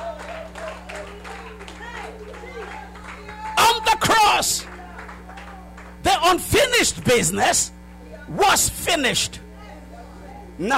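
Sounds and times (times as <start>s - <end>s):
whoops and cheers: 0.0s - 5.8s
audience clapping: 0.0s - 6.1s
speech: 6.3s - 9.4s, 10.6s - 10.7s.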